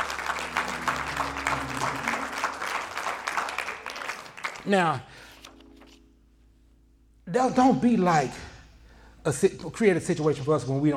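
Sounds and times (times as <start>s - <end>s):
audience hand clapping: 0.0s - 5.1s
speech: 4.6s - 5.3s, 7.3s - 8.5s, 9.2s - 10.9s.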